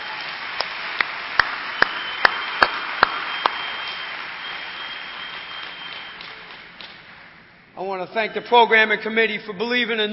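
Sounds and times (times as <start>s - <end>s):
audience applause: 0.0s - 7.0s
speech: 7.8s - 10.1s.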